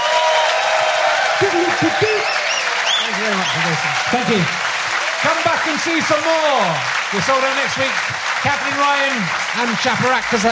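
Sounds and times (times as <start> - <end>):
shouts and whoops: 0.0 - 5.5
audience clapping: 0.0 - 10.4
speech: 3.1 - 10.4.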